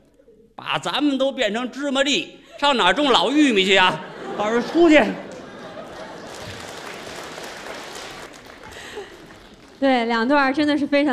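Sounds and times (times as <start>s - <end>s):
speech: 0.6s - 5.2s, 9.8s - 11.1s
laughter: 2.5s - 9.8s
audience applause after comedy performance: 4.4s - 10.1s.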